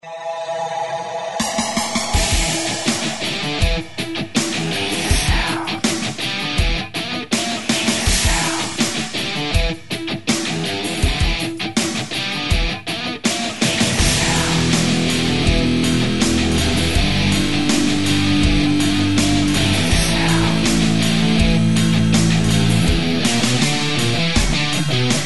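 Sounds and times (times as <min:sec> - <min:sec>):
rock music at 162 BPM: 0:01.4 - 0:25.2.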